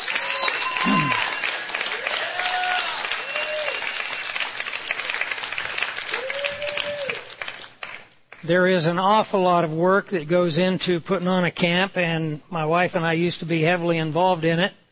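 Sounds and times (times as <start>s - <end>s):
audience applause: 0.0s - 8.1s
speech: 8.5s - 14.8s.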